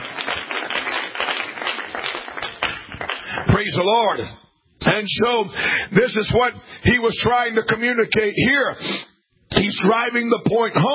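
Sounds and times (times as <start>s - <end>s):
audience clapping hands: 0.0s - 4.3s
speech: 3.6s - 10.9s.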